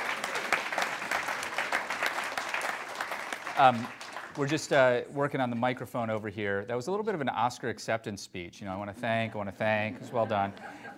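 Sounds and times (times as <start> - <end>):
audience applause: 0.0 - 4.9
speech: 3.6 - 10.9
laughter: 8.9 - 10.9.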